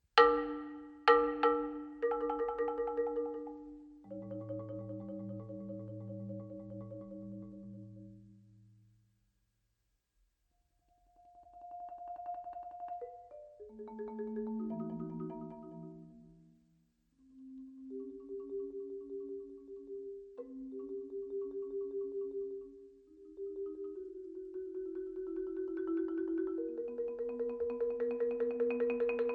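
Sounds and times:
marimba music: 0.2 - 8.6, 11.4 - 16.5, 17.2 - 29.3.

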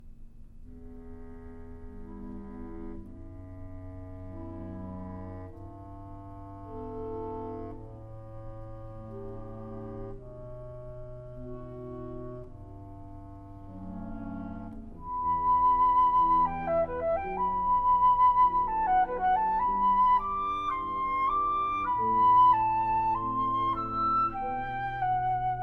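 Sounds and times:
flute and wind ensemble playing a nocturne: 2.0 - 25.6.

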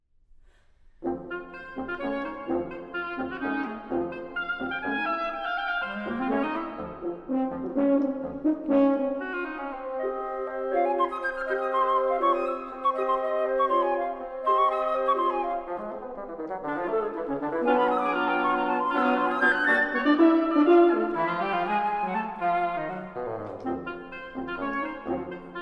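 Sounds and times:
wind quintet playing: 1.0 - 25.5.

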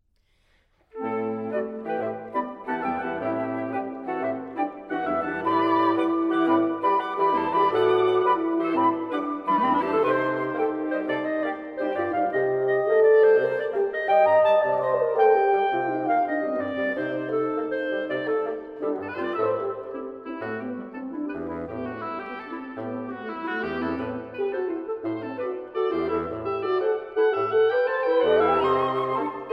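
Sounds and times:
woodwind quintet playing: 0.9 - 29.5.

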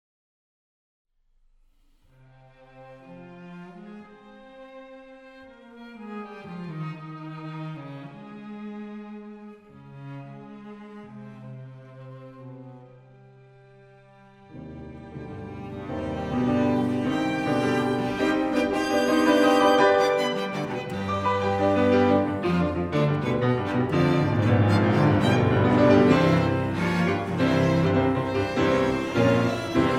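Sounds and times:
piano trio in F minor playing: 14.4 - 29.9.

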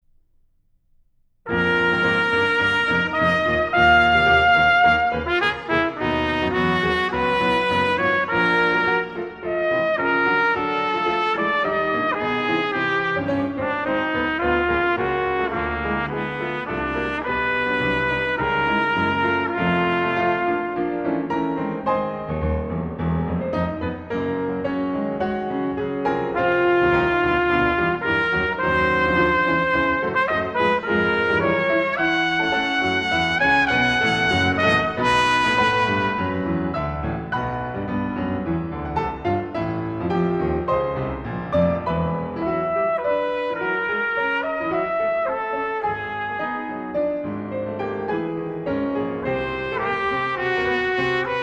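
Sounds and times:
piano: 0.0 - 51.4
trumpet: 1.5 - 21.3, 26.0 - 37.2, 41.8 - 47.6, 49.0 - 51.4.

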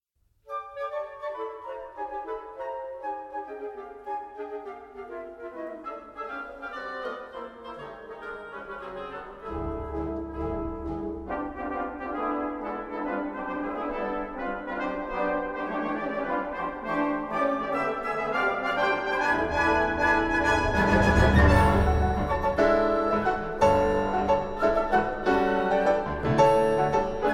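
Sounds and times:
dancelike piano concerto music: 0.5 - 27.3.

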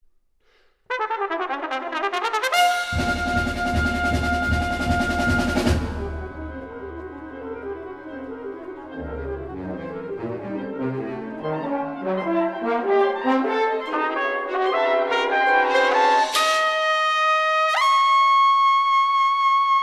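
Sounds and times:
trumpet and wind ensemble playing a concerto movement: 0.9 - 19.8.

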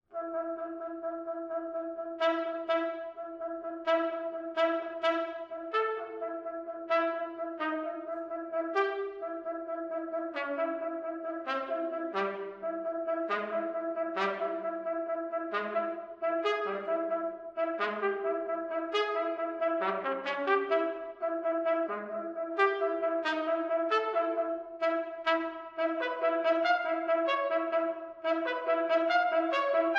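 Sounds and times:
solo trumpet etudes: 0.0 - 29.9.

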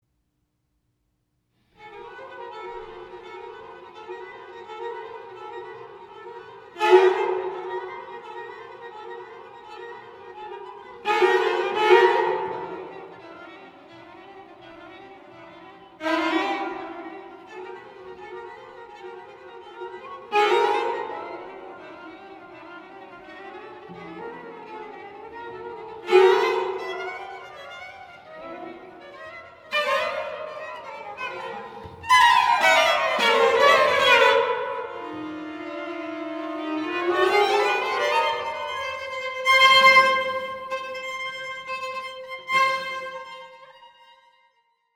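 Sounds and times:
string quartet playing an allegro: 1.8 - 43.8.

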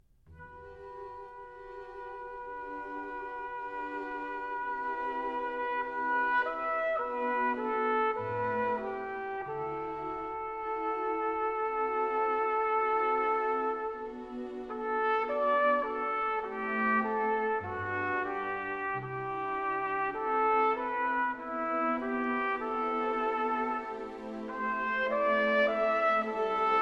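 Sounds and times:
trumpet and strings playing slow and very calm: 0.2 - 26.8.

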